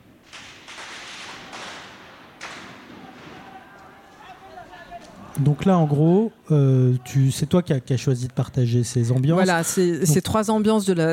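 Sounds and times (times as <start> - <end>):
saturated gunfire recorded in the field in Egypt: 0.2 - 4.2
speech: 5.4 - 11.1.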